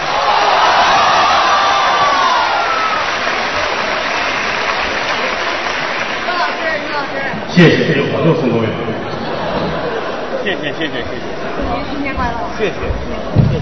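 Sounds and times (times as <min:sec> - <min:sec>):
cheering and high whoops: 0:00.0 - 0:03.9
crowd applause: 0:00.0 - 0:11.6
speech: 0:07.6 - 0:09.2, 0:10.4 - 0:13.6
laughter: 0:08.6 - 0:11.6.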